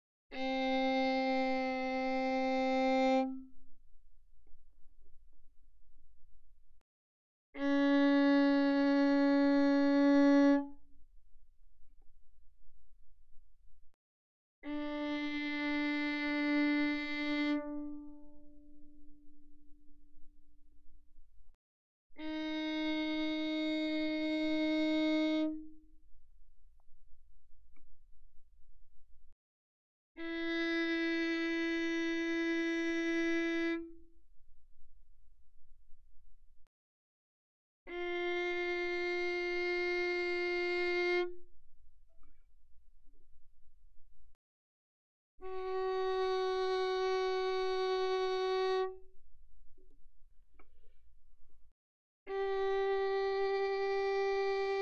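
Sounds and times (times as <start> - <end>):
violin bowed mezzo forte on G string: 0.3 - 3.7, 7.6 - 11.1, 14.6 - 20.3, 22.2 - 27.0, 30.2 - 34.1, 37.9 - 41.6, 45.4 - 50.0, 52.3 - 54.8.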